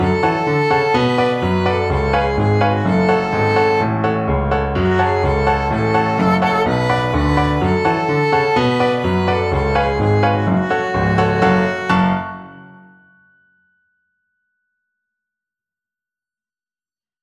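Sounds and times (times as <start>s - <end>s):
violin melody: 0.0s - 12.8s.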